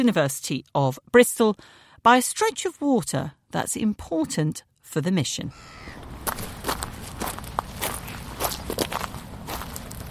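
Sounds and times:
speech: 0.0s - 6.4s
footsteps over seaweed and stones: 6.0s - 10.0s.

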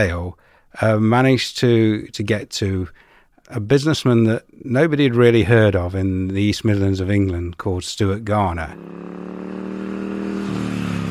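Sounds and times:
speech: 0.0s - 9.7s
Norton motorcycle engine revving: 8.6s - 11.1s.

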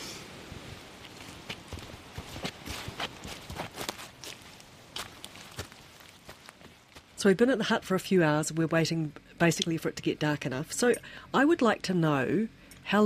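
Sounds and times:
faint hiss: 0.0s - 2.1s
footsteps walking outdoors: 0.8s - 7.2s
speech: 7.2s - 13.0s.

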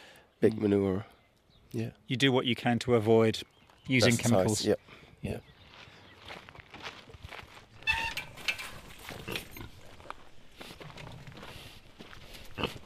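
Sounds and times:
speech: 0.4s - 5.5s
footsteps crunching: 5.6s - 12.8s
Saddleback pigs grunting: 12.5s - 12.8s.

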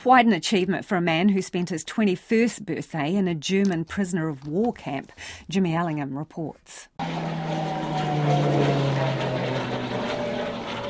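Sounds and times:
speech: 0.0s - 8.8s
T-6C Texan aircraft propeller droning over a house: 7.0s - 10.8s.

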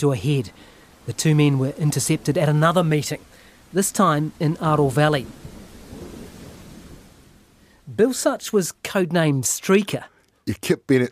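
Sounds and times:
speech: 0.0s - 5.6s, 7.9s - 11.0s
steady rain: 0.0s - 11.0s
rolling thunder: 4.5s - 7.5s.

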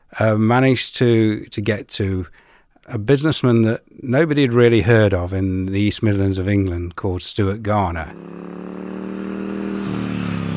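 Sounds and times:
speech: 0.2s - 9.0s
Norton motorcycle engine revving: 8.0s - 10.5s.

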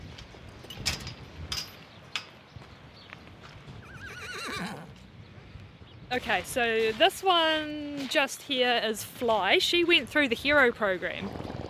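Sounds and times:
horse whinnying: 3.8s - 5.0s
speech: 6.1s - 11.4s.

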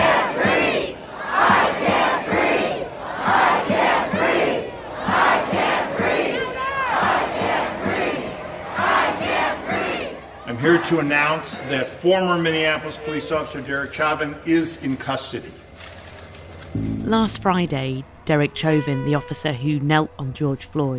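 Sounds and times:
protest crowd shouting in the streets: 0.0s - 11.8s
speech: 10.9s - 15.7s, 16.7s - 20.9s.

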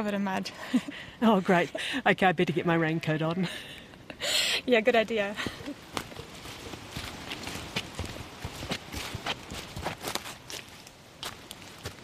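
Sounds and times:
speech: 0.0s - 5.8s
footsteps through dense bush undergrowth: 5.4s - 12.0s.

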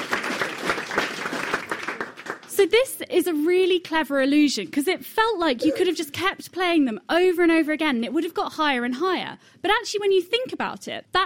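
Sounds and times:
round of applause: 0.0s - 2.6s
speech: 2.6s - 11.2s.

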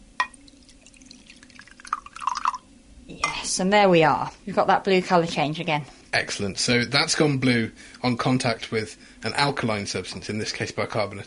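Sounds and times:
bicarbonate solution pouring into a glass: 0.2s - 2.7s
speech: 3.6s - 11.2s.

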